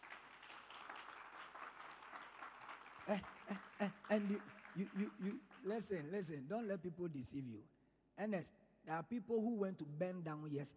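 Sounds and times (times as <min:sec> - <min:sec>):
audience hand clapping: 0:00.0 - 0:06.3
speech: 0:03.1 - 0:10.7.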